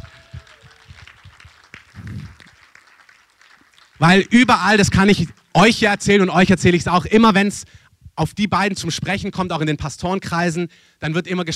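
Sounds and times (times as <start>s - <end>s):
audience clapping: 0.0s - 5.5s
speech: 4.0s - 11.5s.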